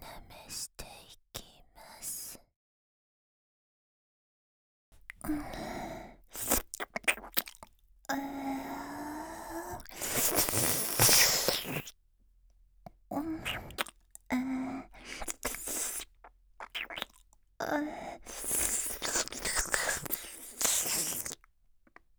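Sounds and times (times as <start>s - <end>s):
mouth sucking sounds: 5.1s - 11.9s, 13.1s - 21.5s.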